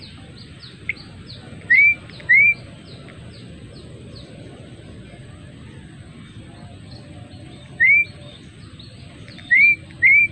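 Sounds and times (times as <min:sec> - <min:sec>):
adult male Java sparrow singing whistled notes: 0:00.0 - 0:04.3, 0:06.8 - 0:10.3.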